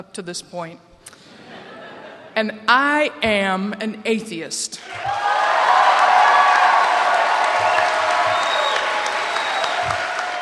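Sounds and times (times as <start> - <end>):
speech: 0.0 - 0.9, 2.4 - 5.4
laughter: 1.3 - 2.4
crowd clapping and hooting: 4.8 - 10.4.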